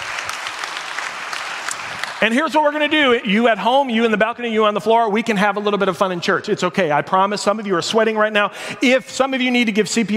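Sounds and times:
round of applause: 0.0 - 2.4
speech: 2.2 - 10.1.

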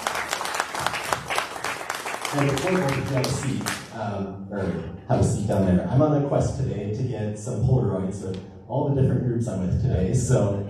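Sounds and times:
audience round of applause: 0.0 - 3.9
speech: 2.3 - 10.6.

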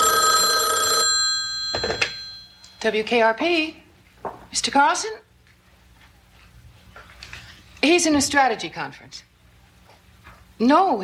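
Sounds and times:
office telephone at a radio station ringing: 0.0 - 2.8
speech: 2.8 - 3.8, 4.5 - 5.2, 7.8 - 9.3, 10.6 - 11.0.

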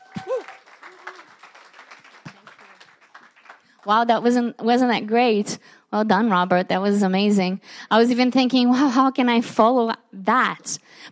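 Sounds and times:
audience round of applause: 0.0 - 3.9
speech: 3.8 - 11.1.

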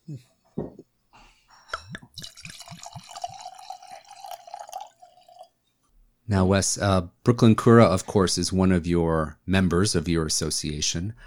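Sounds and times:
speech: 0.1 - 0.4, 6.3 - 11.2
sake pouring into a glass: 2.0 - 5.6.

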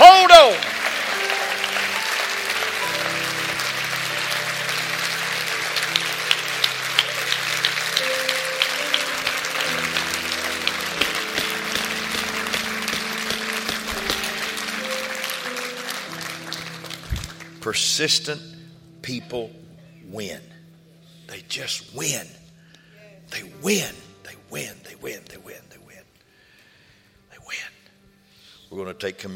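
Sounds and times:
audience clapping hands: 0.0 - 17.8
speech: 18.0 - 20.5, 21.3 - 22.4, 23.3 - 25.2, 28.8 - 29.3.

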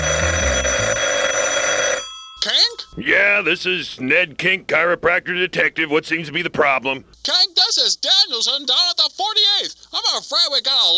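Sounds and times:
telephone ringing: 0.0 - 3.4
speech: 3.0 - 10.9.

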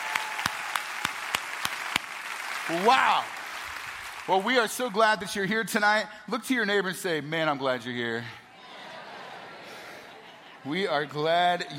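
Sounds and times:
crowd applauding: 0.0 - 5.0
speech: 2.7 - 3.4, 4.3 - 8.4, 10.6 - 11.7
laughter: 8.5 - 11.4.

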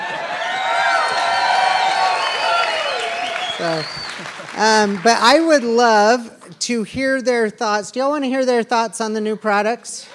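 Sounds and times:
crowd cheering: 0.0 - 5.2
speech: 3.6 - 10.1.

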